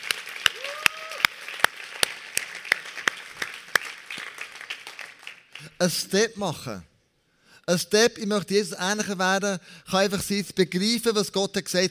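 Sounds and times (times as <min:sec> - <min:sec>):
audience applause: 0:00.0 - 0:05.7
speech: 0:05.8 - 0:06.9, 0:07.7 - 0:11.8.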